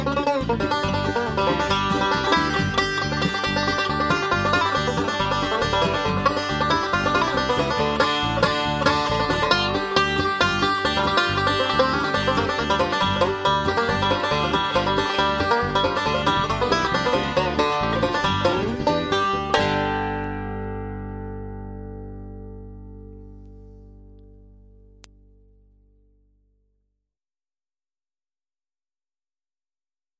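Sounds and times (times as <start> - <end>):
banjo playing: 0.0 - 23.2.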